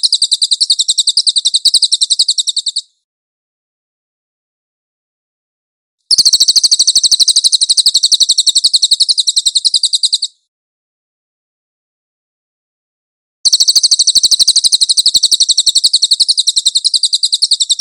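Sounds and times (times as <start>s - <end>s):
cililin bird trilling: 0.0s - 2.9s, 6.1s - 10.4s, 13.5s - 17.8s.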